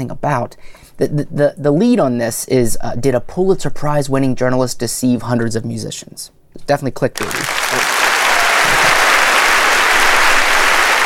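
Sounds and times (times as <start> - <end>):
speech: 0.0 - 7.9
crowd applause sound effect from a large audience: 7.2 - 11.0.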